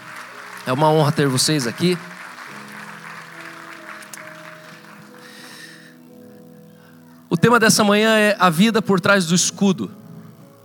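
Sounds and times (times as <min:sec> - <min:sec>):
crowd applauding for couples: 0:00.0 - 0:06.0
speech: 0:00.7 - 0:02.2, 0:07.5 - 0:10.0.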